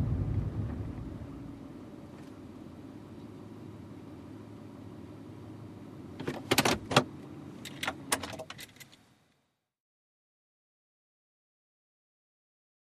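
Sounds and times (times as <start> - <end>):
SUV driving at 55 to 65 mph and stopping: 0.0 - 9.2.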